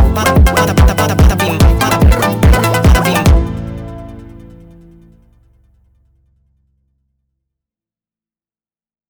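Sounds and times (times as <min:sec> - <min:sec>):
sped up funk music: 0:00.0 - 0:05.2.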